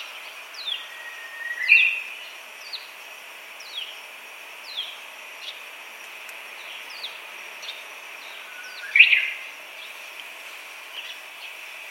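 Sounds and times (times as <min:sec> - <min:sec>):
Japanese bush warbler whistling song: 0:00.0 - 0:03.0, 0:03.6 - 0:04.0, 0:04.6 - 0:05.6, 0:06.6 - 0:10.0.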